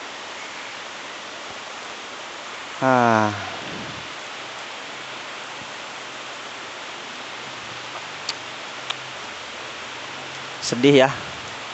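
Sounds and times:
steady rain: 0:00.0 - 0:11.7
speech: 0:02.8 - 0:03.5, 0:10.7 - 0:11.2.

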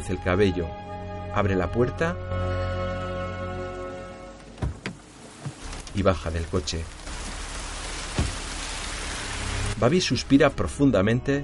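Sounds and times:
speech: 0:00.0 - 0:02.6, 0:06.0 - 0:07.0, 0:09.8 - 0:11.4
dense even downpour: 0:04.8 - 0:09.9
low thump: 0:08.1 - 0:08.5.

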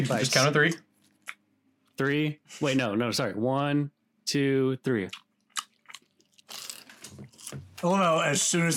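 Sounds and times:
speech: 0:00.0 - 0:00.9, 0:02.0 - 0:05.2, 0:07.5 - 0:08.7
people munching a homemade sandwich, popcorn and chocolate: 0:05.1 - 0:08.0.

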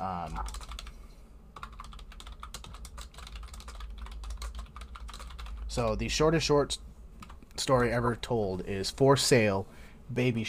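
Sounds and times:
speech: 0:00.2 - 0:00.7, 0:05.8 - 0:06.8, 0:07.6 - 0:10.4
typing a message into a chat on a computer keyboard: 0:00.3 - 0:00.9, 0:01.6 - 0:06.0.

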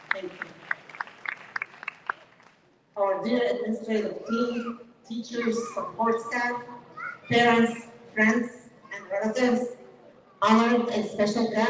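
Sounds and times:
audience applause: 0:00.0 - 0:02.6
speech: 0:00.2 - 0:00.5, 0:03.2 - 0:09.8, 0:10.4 - 0:11.6.

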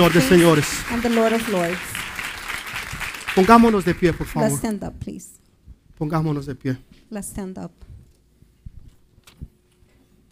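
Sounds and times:
speech: 0:00.0 - 0:02.0, 0:03.4 - 0:05.4, 0:06.0 - 0:07.9
audience applause: 0:00.0 - 0:04.6.

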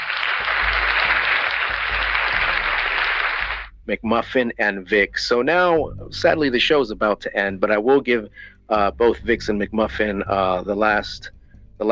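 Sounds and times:
audience applause for a show's two guests: 0:00.0 - 0:03.7
speech: 0:03.9 - 0:11.9.

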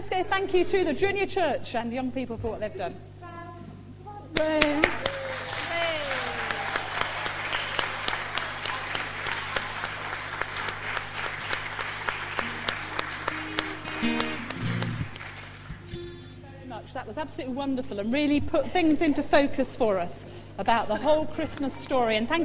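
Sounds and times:
speech: 0:00.1 - 0:03.1, 0:04.3 - 0:05.2, 0:17.2 - 0:22.4
audience clapping in a reverberant room: 0:04.4 - 0:16.4.

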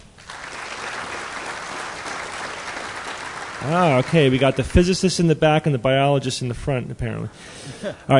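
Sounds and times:
audience applause: 0:00.1 - 0:05.2
speech: 0:03.6 - 0:08.1
laughter: 0:07.1 - 0:08.1.

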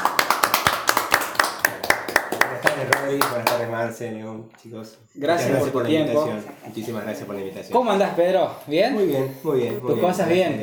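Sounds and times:
hands clapping in applause: 0:00.0 - 0:03.8
faint voices murmuring: 0:02.7 - 0:10.6
speech: 0:02.8 - 0:10.6.

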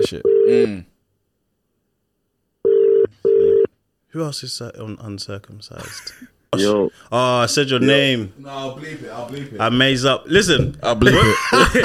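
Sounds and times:
speech: 0:00.0 - 0:00.9, 0:04.1 - 0:11.8
unanswered phone call ringing tone: 0:02.6 - 0:03.7
laughter: 0:11.0 - 0:11.8.

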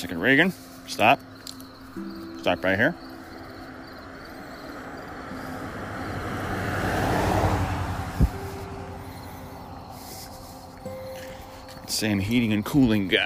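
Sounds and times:
speech: 0:00.0 - 0:01.3, 0:02.0 - 0:03.1, 0:12.0 - 0:13.2
car driving by on road: 0:01.2 - 0:12.0.

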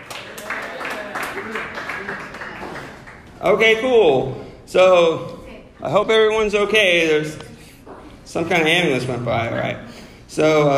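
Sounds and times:
audience clapping for a comedian at a stand-up show: 0:00.0 - 0:03.6
speech: 0:03.4 - 0:07.4, 0:08.3 - 0:10.7.

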